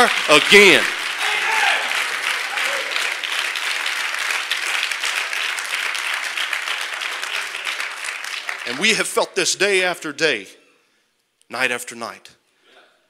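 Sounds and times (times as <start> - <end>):
crowd clapping hands: 0.0 - 9.3
speech: 0.1 - 1.0, 8.8 - 10.6, 11.5 - 12.4.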